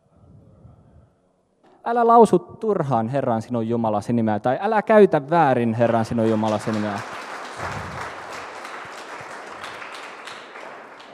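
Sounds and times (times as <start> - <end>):
speech: 1.8 - 8.0
applause: 5.8 - 11.1.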